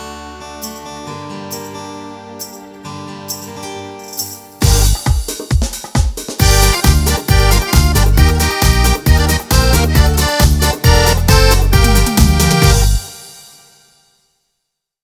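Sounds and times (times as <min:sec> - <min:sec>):
pop dance music: 0:04.6 - 0:13.3.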